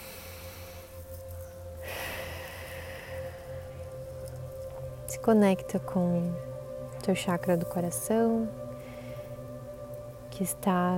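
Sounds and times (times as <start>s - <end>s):
deep breath drawn in during a guided meditation: 0.0s - 1.0s, 1.8s - 4.0s
steady low drone: 0.0s - 10.9s
speech: 5.2s - 6.5s, 7.1s - 8.6s, 10.4s - 10.9s.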